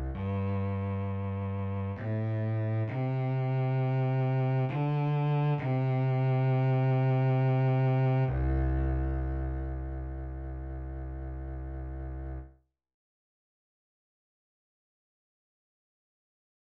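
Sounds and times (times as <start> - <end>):
double bass playing a hymn: 0.0 - 12.5.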